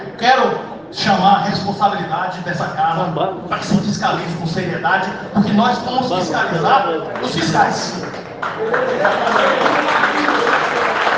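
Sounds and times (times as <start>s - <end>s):
speech: 0.2s - 10.5s
applause: 7.1s - 11.1s.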